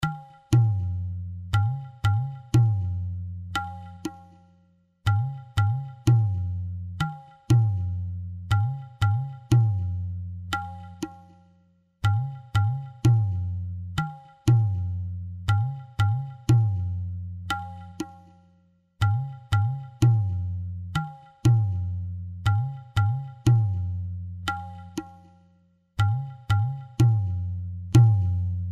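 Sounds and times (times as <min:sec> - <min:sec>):
dipchandi tala rhythm: 0:00.0 - 0:18.4, 0:19.0 - 0:25.4, 0:26.0 - 0:28.6.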